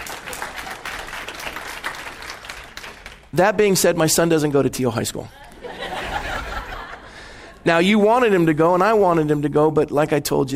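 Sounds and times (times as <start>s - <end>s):
audience applause: 0.0s - 3.3s
speech: 3.3s - 5.4s, 7.6s - 10.5s
laughter: 5.3s - 7.6s.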